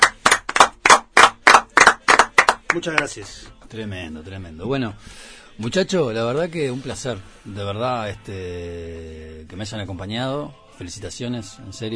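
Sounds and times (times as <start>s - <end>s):
audience applause: 0.0s - 2.8s
speech: 2.8s - 11.9s.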